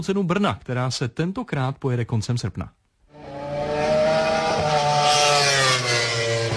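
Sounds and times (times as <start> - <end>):
speech: 0.0 - 2.8
racing motorcycles on a race circuit: 3.1 - 6.5.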